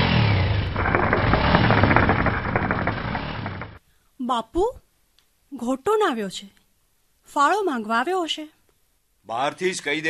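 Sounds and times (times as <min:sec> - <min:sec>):
unmuffled motorcycle engine without a silencer rumbling: 0:00.0 - 0:03.8
speech: 0:04.3 - 0:04.8, 0:05.5 - 0:06.6, 0:07.3 - 0:08.6, 0:09.3 - 0:10.0.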